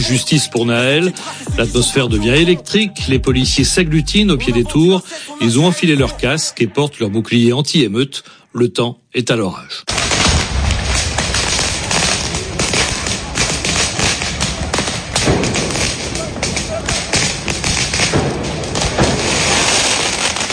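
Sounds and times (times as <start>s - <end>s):
speech: 0.0s - 10.1s
firework mortar shots exploding: 9.9s - 20.5s.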